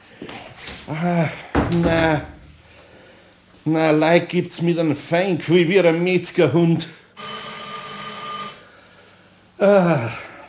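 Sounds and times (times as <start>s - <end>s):
speech: 0.9s - 2.4s, 3.6s - 7.0s, 9.6s - 10.2s
telephone bell ringing: 7.2s - 9.1s.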